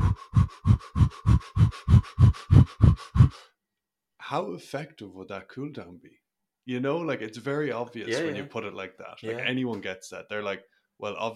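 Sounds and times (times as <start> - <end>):
person imitating rapid panting through the mouth: 0.0 - 3.5
speech: 4.3 - 11.3.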